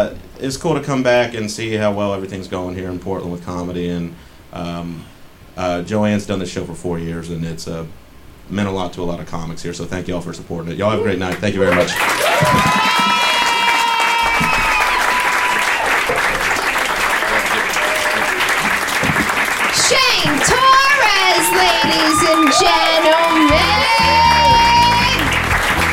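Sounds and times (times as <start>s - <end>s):
speech: 0.0s - 12.8s
audience applause: 11.6s - 25.9s.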